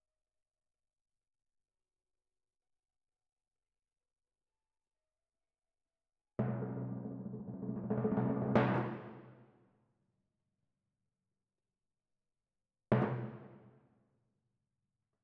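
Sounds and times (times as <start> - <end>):
timpani in F: 6.4 - 9.5.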